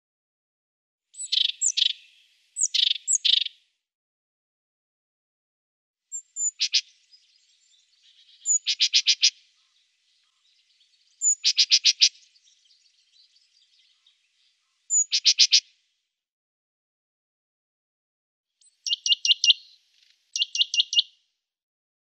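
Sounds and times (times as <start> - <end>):
Eurasian blue tit calls: 1.2 - 3.5, 6.1 - 10.4, 11.2 - 12.8, 14.9 - 15.6, 18.6 - 21.1.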